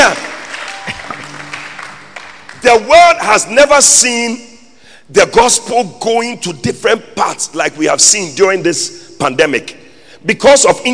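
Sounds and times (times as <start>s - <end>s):
audience clapping: 0.0s - 3.2s
speech: 2.7s - 4.5s, 5.1s - 10.9s.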